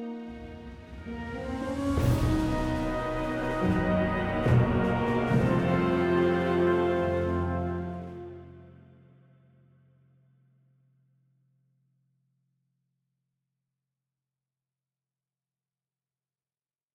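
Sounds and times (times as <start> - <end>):
neutral event sound: 0.2 - 8.6.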